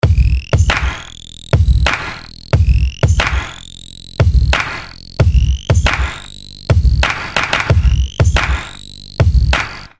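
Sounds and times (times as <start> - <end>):
big krump beat: 0.0 - 9.9.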